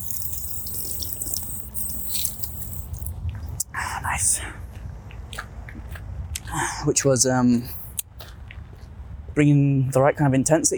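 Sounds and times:
drinking from a water fountain: 0:00.0 - 0:03.1, 0:07.6 - 0:08.0
speech: 0:06.8 - 0:07.8, 0:09.4 - 0:10.7.

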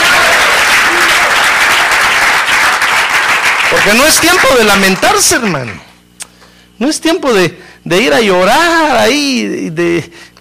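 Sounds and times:
audience applause: 0:00.0 - 0:05.9
speech: 0:03.8 - 0:05.9, 0:06.8 - 0:10.2.

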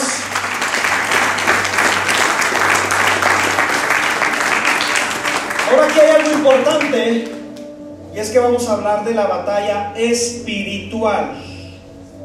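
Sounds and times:
audience applauding: 0:00.0 - 0:07.7
speech: 0:05.8 - 0:07.4, 0:08.2 - 0:11.5.

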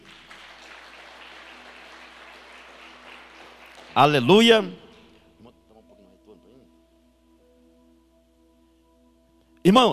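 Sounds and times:
audience applauding loudly: 0:00.0 - 0:04.5
speech: 0:04.0 - 0:04.8, 0:09.7 - 0:09.9.

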